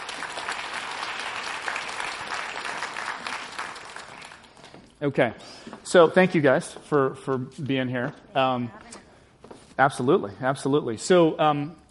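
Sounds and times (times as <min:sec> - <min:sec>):
audience applause welcoming people onto a stage: 0:00.0 - 0:04.7
speech: 0:05.0 - 0:09.0, 0:09.8 - 0:11.8.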